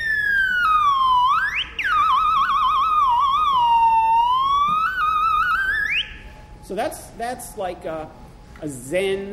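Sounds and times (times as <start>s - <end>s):
guitar amplifier feedback from a small guitar amp: 0.0s - 6.7s
speech: 6.7s - 9.3s.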